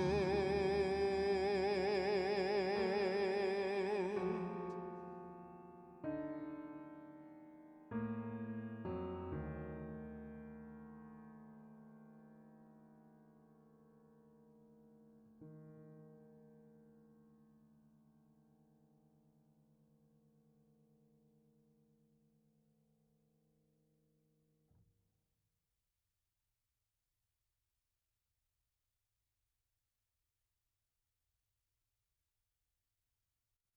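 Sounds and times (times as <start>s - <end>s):
tenor singing a ballad with reverb: 0.0s - 5.0s
piano: 0.0s - 23.5s.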